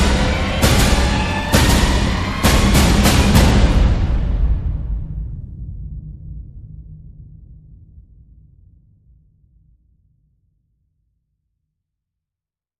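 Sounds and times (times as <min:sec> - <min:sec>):
percussion: 0:00.0 - 0:05.5.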